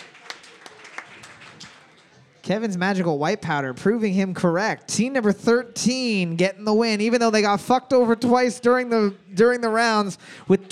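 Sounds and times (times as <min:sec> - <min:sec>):
applause: 0:00.0 - 0:02.2
speech: 0:02.5 - 0:10.7.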